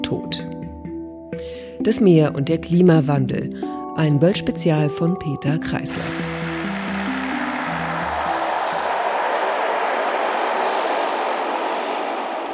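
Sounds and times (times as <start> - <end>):
speech: 1.8 - 6.4
airplane landing jet roar: 5.9 - 12.5
lower airplane engine drone: 5.9 - 12.5
thin high-pitched airplane whine: 5.9 - 12.5.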